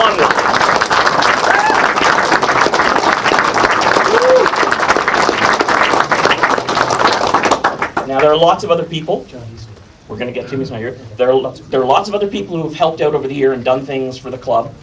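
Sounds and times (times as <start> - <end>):
audience applause: 0.0 - 8.3
speech: 8.2 - 14.8.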